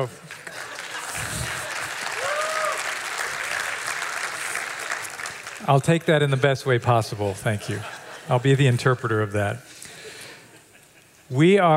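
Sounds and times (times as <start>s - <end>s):
speech: 0.0s - 0.5s, 5.6s - 9.7s, 11.3s - 11.7s
audience clapping: 0.0s - 6.8s.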